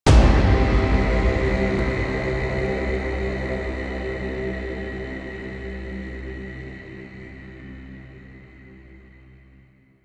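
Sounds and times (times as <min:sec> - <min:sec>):
combat music cue ending: 0:00.1 - 0:10.0.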